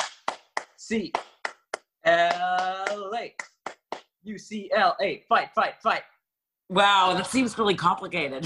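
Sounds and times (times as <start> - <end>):
hand claps demonstrating an eight-clap cheer: 0.0 - 4.2
speech: 0.9 - 1.3, 2.1 - 3.5, 4.2 - 6.1, 6.7 - 8.4.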